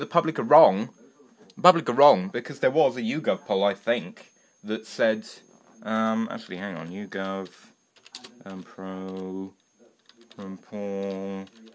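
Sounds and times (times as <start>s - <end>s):
speech: 0.0s - 1.0s, 1.6s - 7.7s, 8.4s - 9.6s, 10.4s - 11.7s
typing on a computer keyboard with one hand: 7.2s - 9.3s, 10.0s - 11.7s.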